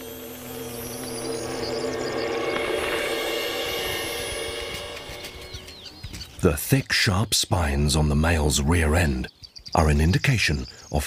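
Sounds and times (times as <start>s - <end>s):
wall carder bee buzzing: 0.0s - 6.4s
speech: 6.4s - 11.0s.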